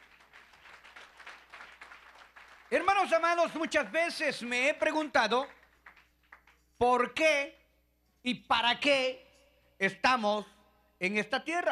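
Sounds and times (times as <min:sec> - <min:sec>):
church congregation clapping rhythmically in praise during a service: 0:00.0 - 0:06.8
speech: 0:02.7 - 0:05.6, 0:06.8 - 0:07.6, 0:08.2 - 0:09.2, 0:09.8 - 0:11.7.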